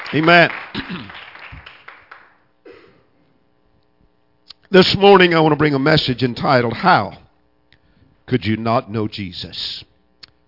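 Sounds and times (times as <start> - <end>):
audience hand clapping: 0.0 - 2.5
speech: 0.1 - 1.2, 4.7 - 7.2, 8.3 - 9.9.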